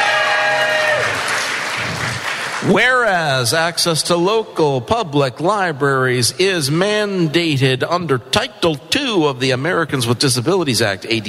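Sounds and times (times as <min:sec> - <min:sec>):
high whoop or whistle: 0:00.0 - 0:01.2
audience clapping hands: 0:00.0 - 0:03.1
speech: 0:02.6 - 0:11.2.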